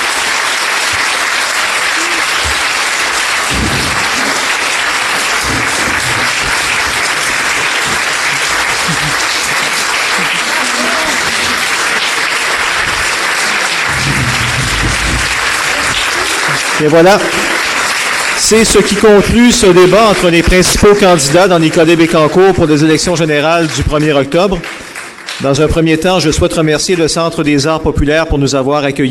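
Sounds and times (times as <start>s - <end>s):
audience applause for candidates: 0.0s - 25.9s
laughter: 1.8s - 2.8s, 3.8s - 17.6s
speech: 16.8s - 17.4s, 18.5s - 24.7s, 25.4s - 29.0s.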